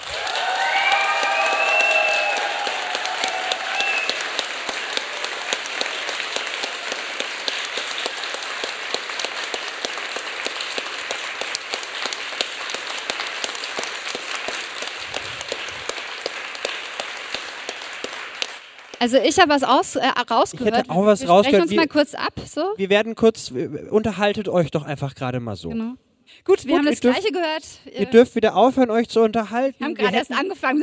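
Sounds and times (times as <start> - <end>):
whistles and cheers: 0.0 - 7.2
sustained audience applause: 0.0 - 19.6
speech: 19.0 - 30.8.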